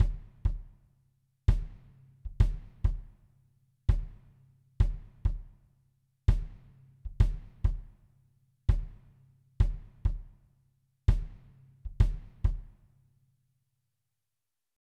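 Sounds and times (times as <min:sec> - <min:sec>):
Wave Drum kick drum: 0:00.0 - 0:00.9, 0:01.5 - 0:05.7, 0:06.3 - 0:12.9.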